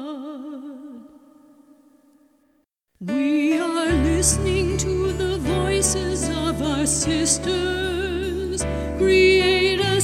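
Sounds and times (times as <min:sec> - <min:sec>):
harmony: 0:03.1 - 0:10.0.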